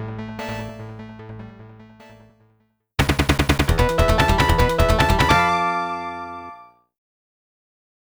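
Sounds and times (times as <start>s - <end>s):
arcade boss stage clear music: 3.0s - 6.4s.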